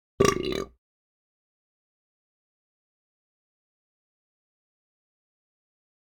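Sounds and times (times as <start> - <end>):
person burping: 0.2 - 0.8.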